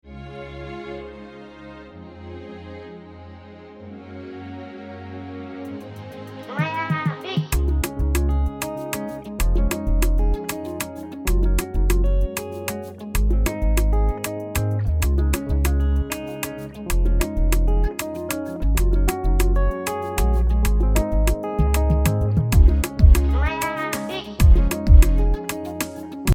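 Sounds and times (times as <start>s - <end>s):
afrobeat track: 5.7s - 26.3s.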